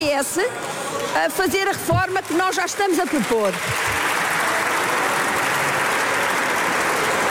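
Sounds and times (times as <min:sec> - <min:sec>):
speech: 0:00.2 - 0:04.0
applause from parliamentary benches: 0:00.5 - 0:07.2.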